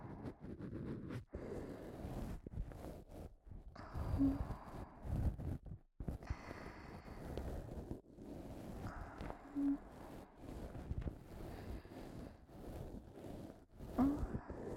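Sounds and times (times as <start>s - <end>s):
brush on right ear for ASMR: 0.0s - 14.7s.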